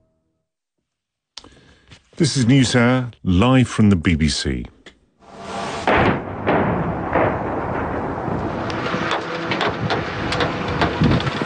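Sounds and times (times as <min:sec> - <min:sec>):
speech: 0:02.2 - 0:04.8
missile and drone strikes exploding: 0:05.3 - 0:10.7
loud rumbling roar: 0:05.3 - 0:11.4.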